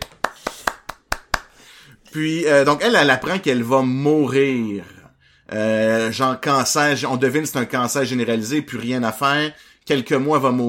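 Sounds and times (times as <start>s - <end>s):
hand clapping: 0.0s - 1.7s
speech: 2.1s - 10.6s.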